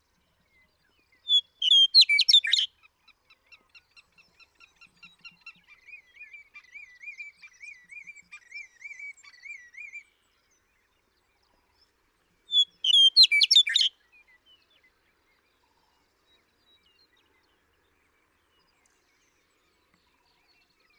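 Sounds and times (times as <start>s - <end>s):
western meadowlark song: 0.0s - 20.9s.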